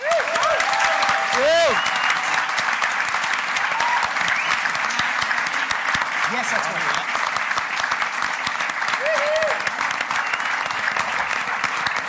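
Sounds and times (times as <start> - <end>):
audience applause welcoming a guest onto a stage: 0.0 - 12.0.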